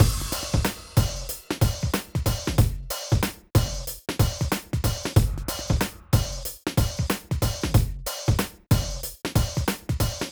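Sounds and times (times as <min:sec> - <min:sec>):
drums: 0:00.0 - 0:10.3.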